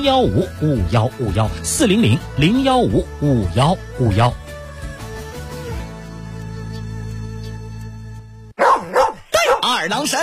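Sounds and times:
speech: 0:00.0 - 0:04.5, 0:09.9 - 0:10.2
dog barking: 0:08.6 - 0:09.8.

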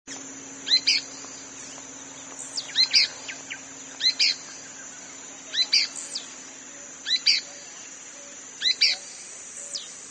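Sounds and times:
pale-breasted spinetail Synallaxis albescens inaequalis calling: 0:00.1 - 0:10.0.

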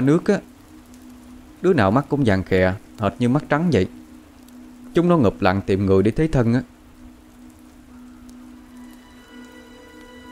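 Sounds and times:
speech: 0:00.0 - 0:00.5, 0:01.6 - 0:04.0, 0:05.0 - 0:06.7
heavy pouring rain: 0:00.0 - 0:10.3.

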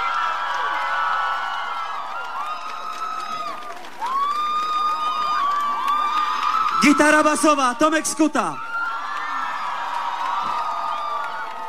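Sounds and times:
large concert audience in Żywiec, Poland applauding and cheering: 0:00.0 - 0:11.6
speech: 0:06.8 - 0:08.7.

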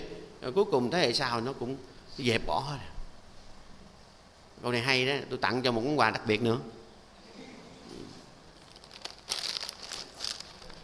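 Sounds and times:
speech: 0:00.4 - 0:03.0, 0:04.6 - 0:06.8
package of Japanese seaweed snacks crinkling: 0:08.6 - 0:10.8.

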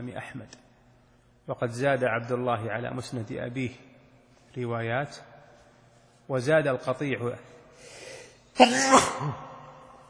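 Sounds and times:
speech: 0:00.0 - 0:00.7, 0:01.5 - 0:03.9, 0:04.5 - 0:05.3, 0:06.3 - 0:08.0, 0:08.6 - 0:09.5
sneeze during an Arabic religious lesson: 0:08.6 - 0:09.6.

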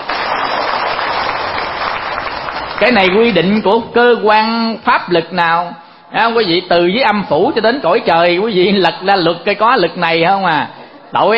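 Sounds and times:
audience applause: 0:00.0 - 0:03.3
speech: 0:02.8 - 0:11.3.

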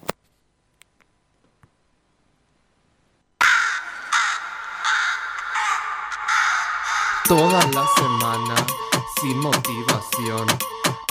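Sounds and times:
seagulls calling: 0:03.4 - 0:08.9
speech: 0:07.3 - 0:11.0.

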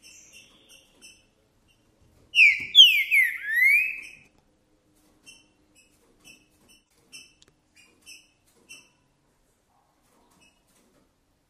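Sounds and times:
green-winged saltator whistled song: 0:02.4 - 0:04.2.

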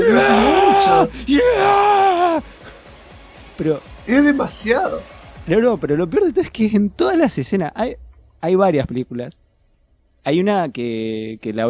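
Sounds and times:
person imitating a scream of rage: 0:00.0 - 0:02.5
speech: 0:00.1 - 0:02.6, 0:03.6 - 0:09.4, 0:10.2 - 0:11.6.

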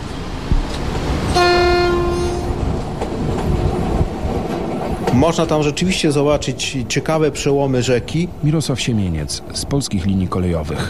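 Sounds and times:
continuous low rumble of rolling train machinery: 0:00.0 - 0:10.8
departing train number 41203 horn blast: 0:01.3 - 0:02.8
speech: 0:05.2 - 0:10.8.

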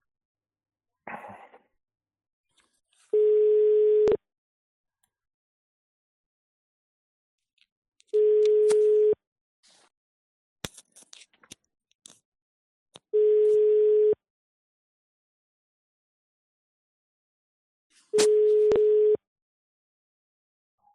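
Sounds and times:
outgoing phone call ringback tones with no answer: 0:03.2 - 0:04.2, 0:08.2 - 0:09.2, 0:13.2 - 0:14.2, 0:18.2 - 0:19.2.

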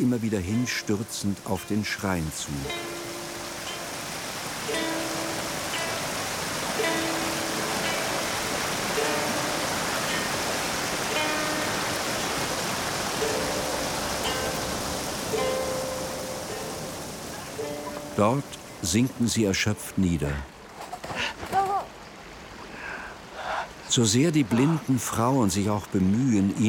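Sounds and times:
waterfall rushing beside mountain path: 0:00.0 - 0:26.6
speech: 0:00.1 - 0:03.0, 0:18.2 - 0:20.6, 0:24.0 - 0:26.6.

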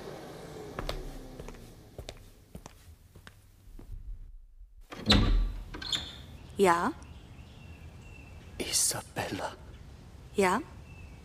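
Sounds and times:
door being handled and opened: 0:03.9 - 0:06.3
speech: 0:06.6 - 0:07.0, 0:08.7 - 0:09.6, 0:10.4 - 0:10.7.

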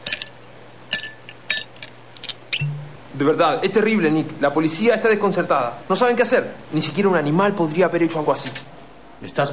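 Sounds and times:
whisky glass clinking: 0:00.0 - 0:01.9, 0:02.5 - 0:03.0
quiet low hum: 0:00.0 - 0:09.5
speech: 0:03.2 - 0:09.5.

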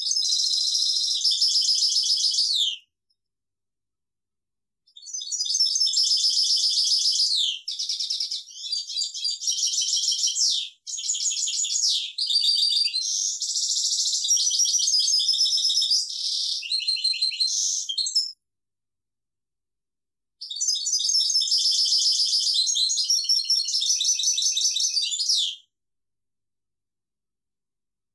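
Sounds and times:
European goldfinch twittering song: 0:00.0 - 0:02.8, 0:04.9 - 0:18.4, 0:20.4 - 0:25.6.

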